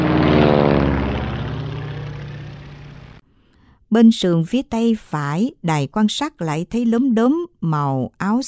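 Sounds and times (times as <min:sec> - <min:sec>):
three-blade helicopter flying slowly overhead: 0:00.0 - 0:03.2
speech: 0:03.9 - 0:08.4.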